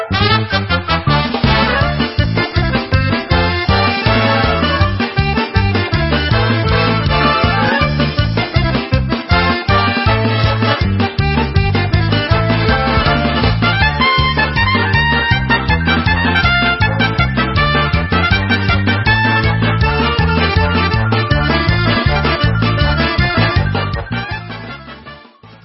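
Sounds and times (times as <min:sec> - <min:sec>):
instrumental hora music: 0:00.1 - 0:25.5.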